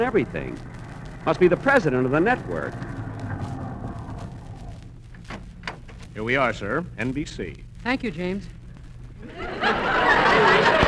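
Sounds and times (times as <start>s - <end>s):
speech: 0.0s - 2.9s, 6.2s - 8.6s
car driving in with engine rumbling: 0.0s - 6.3s
laughter: 9.2s - 10.8s.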